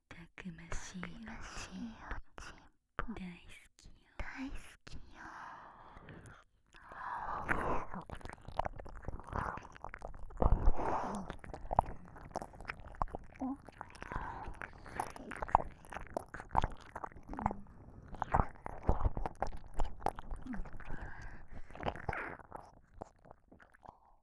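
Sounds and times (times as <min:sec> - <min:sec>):
ear licking: 0:06.2 - 0:24.0.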